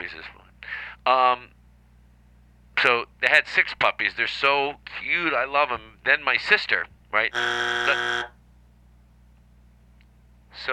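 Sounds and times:
speech: 1.0s - 1.6s, 2.8s - 8.4s, 10.6s - 10.7s
loud flat electronic buzzer: 7.3s - 8.4s.

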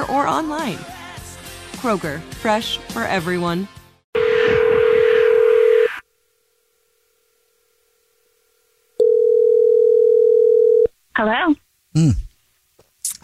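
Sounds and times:
speech: 0.1s - 1.0s, 1.8s - 3.8s, 11.2s - 12.2s
telephone tone while dialing: 4.2s - 6.0s, 9.0s - 10.9s.

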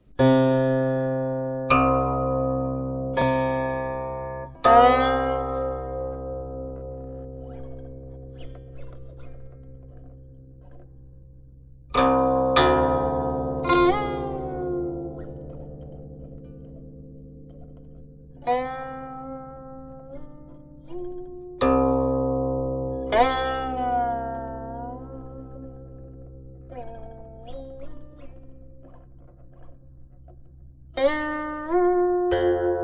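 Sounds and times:
solo guqin music with sparse plucked notes: 0.1s - 32.8s.

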